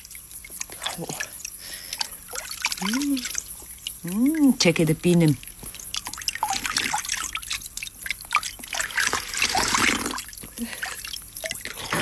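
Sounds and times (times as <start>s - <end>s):
water trickling and dripping at a spring: 0.0s - 12.0s
speech: 1.0s - 1.3s, 2.8s - 3.4s, 4.0s - 5.5s.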